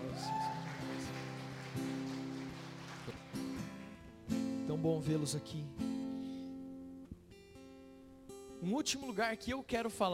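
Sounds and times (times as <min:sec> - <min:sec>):
audience applauding the worship band: 0:00.0 - 0:03.9
speech: 0:04.7 - 0:05.8, 0:08.7 - 0:10.1.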